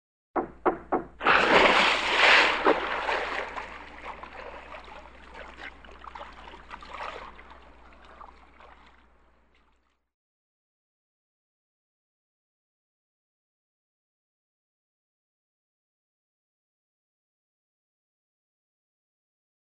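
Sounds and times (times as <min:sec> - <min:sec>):
single dive into the deep: 0:00.4 - 0:09.4.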